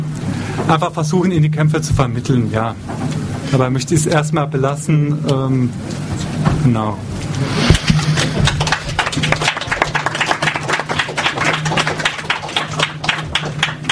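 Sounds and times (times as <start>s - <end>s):
speech: 0.7s - 7.7s
audience applause: 7.6s - 13.9s.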